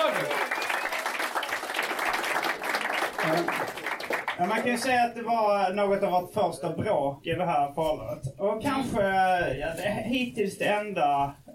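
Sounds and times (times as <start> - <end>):
audience applause: 0.0 - 4.9
speech: 4.4 - 11.4.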